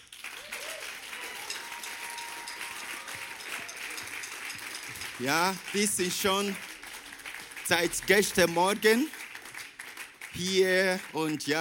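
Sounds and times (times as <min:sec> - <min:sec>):
audience applause: 0:00.0 - 0:11.5
speech: 0:05.2 - 0:06.7, 0:07.7 - 0:09.2, 0:10.4 - 0:11.5.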